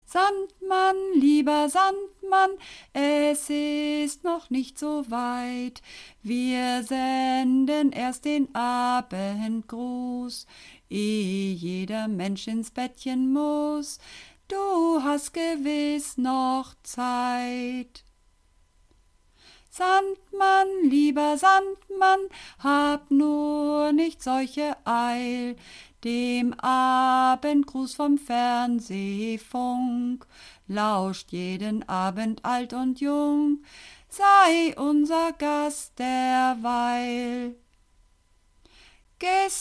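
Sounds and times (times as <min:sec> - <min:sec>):
soprano singing practice: 0:00.1 - 0:18.0, 0:19.7 - 0:37.6, 0:39.2 - 0:39.5.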